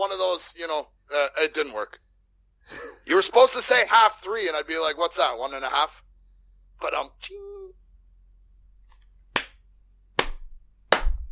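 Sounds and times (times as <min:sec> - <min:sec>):
speech: 0:00.0 - 0:02.0, 0:02.7 - 0:06.0, 0:06.8 - 0:07.6
hands clapping together in sync: 0:09.3 - 0:09.6, 0:10.2 - 0:11.3.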